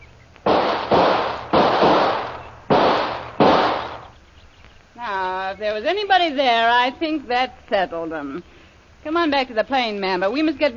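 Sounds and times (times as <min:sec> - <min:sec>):
gunshots: 0:00.4 - 0:04.1
speech: 0:05.6 - 0:10.7.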